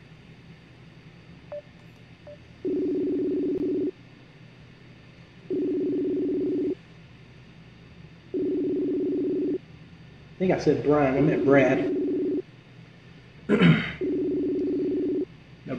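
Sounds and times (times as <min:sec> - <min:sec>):
faint low hum: 0:00.0 - 0:15.7
telephone line ringing: 0:02.6 - 0:03.9, 0:05.5 - 0:06.8, 0:08.4 - 0:09.6, 0:11.2 - 0:12.4, 0:14.0 - 0:15.3
speech: 0:10.4 - 0:12.0.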